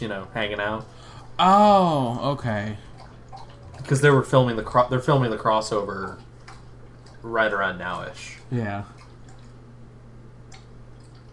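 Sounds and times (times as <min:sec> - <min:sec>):
speech: 0:00.0 - 0:02.9, 0:03.8 - 0:06.3, 0:07.2 - 0:09.0
steady low hum: 0:00.0 - 0:11.3
dog lapping water while drinking: 0:02.8 - 0:04.6, 0:05.2 - 0:08.2, 0:08.9 - 0:09.6.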